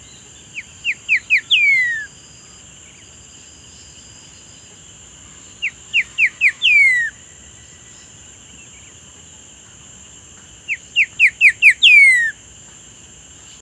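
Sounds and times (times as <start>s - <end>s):
bird whistling: 0.8s - 2.1s, 5.6s - 7.1s, 11.0s - 12.3s.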